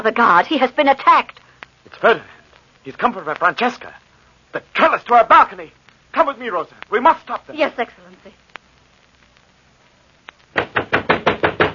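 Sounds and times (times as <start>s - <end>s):
speech: 0.0s - 8.4s
loud rapid pounding on a wooden door: 10.6s - 11.7s.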